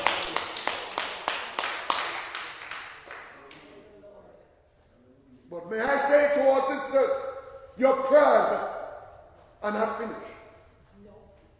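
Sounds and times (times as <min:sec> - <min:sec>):
audience clapping: 0:00.0 - 0:03.7
speech: 0:05.7 - 0:08.7, 0:09.6 - 0:10.3.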